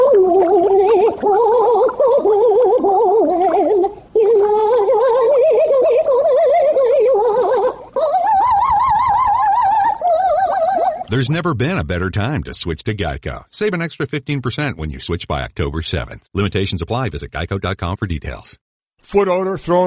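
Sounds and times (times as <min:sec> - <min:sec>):
goldfish gargling opera underwater: 0:00.0 - 0:12.4
speech: 0:11.2 - 0:19.8.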